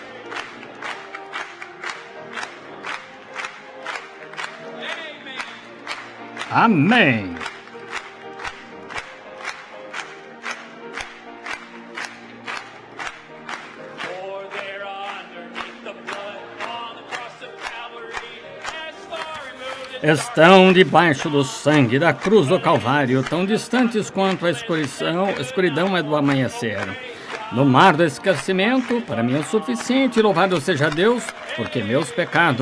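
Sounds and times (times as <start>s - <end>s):
audience clapping in steady rhythm: 0.0s - 32.6s
voices cheering and calling out: 6.4s - 7.4s, 19.2s - 32.6s
speech: 6.5s - 7.4s, 20.1s - 32.6s.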